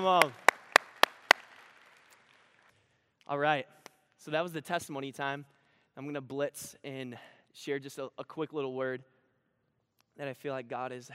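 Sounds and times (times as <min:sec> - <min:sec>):
speech: 0:00.0 - 0:00.4, 0:03.3 - 0:09.1, 0:10.2 - 0:11.1
hand claps: 0:00.0 - 0:02.7.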